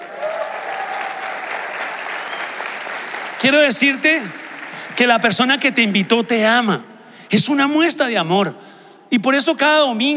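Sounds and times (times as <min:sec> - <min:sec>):
audience applause: 0:00.0 - 0:06.3
speech: 0:03.4 - 0:04.4, 0:05.0 - 0:10.1.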